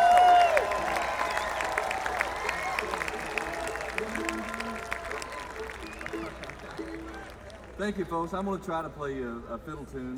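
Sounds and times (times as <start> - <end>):
audience applause for a fiddle player at a live music show: 0.0 - 8.1
speech: 7.8 - 10.1.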